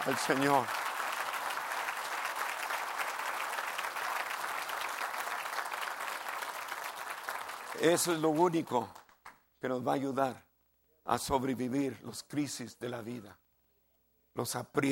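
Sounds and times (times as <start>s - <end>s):
speech: 0.0s - 0.8s, 7.8s - 9.0s, 9.6s - 10.5s, 11.1s - 13.4s, 14.4s - 14.8s
audience applause: 0.0s - 9.2s.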